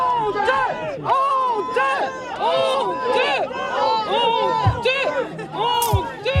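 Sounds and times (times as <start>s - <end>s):
crowd of Le Porge residents shouting to greet a minister: 0.1s - 6.3s.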